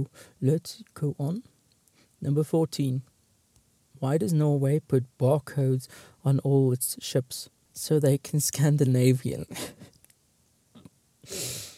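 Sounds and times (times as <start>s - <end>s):
faint soft breaths: 0.0s - 0.4s, 1.8s - 2.2s, 5.8s - 6.3s
speech: 0.0s - 1.5s, 2.2s - 3.1s, 4.0s - 9.9s
sharp breathy exhale through the nose: 11.2s - 11.7s.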